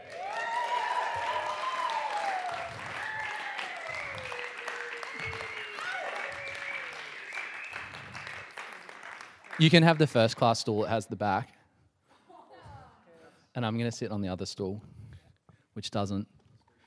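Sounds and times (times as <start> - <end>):
audience applause: 0.0 - 10.4
speech: 9.6 - 11.6, 13.6 - 14.9, 15.8 - 16.4.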